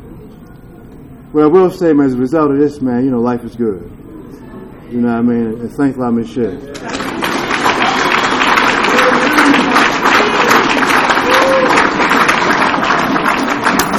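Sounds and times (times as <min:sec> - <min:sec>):
faint murmur of voices: 0:00.0 - 0:13.9
speech: 0:01.3 - 0:04.0, 0:04.9 - 0:07.0
audience applause: 0:06.7 - 0:13.9.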